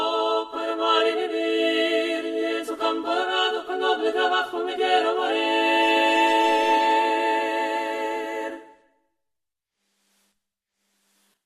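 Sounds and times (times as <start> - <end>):
four voices singing: 0.0 - 8.8.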